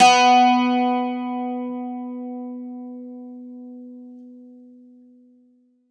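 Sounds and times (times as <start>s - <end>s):
bouzouki: 0.0s - 2.5s.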